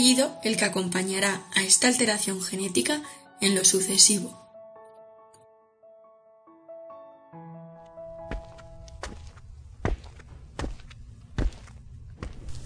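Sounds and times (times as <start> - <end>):
speech: 0.0 - 4.4
heavy boots on metro station stairs: 8.2 - 12.6.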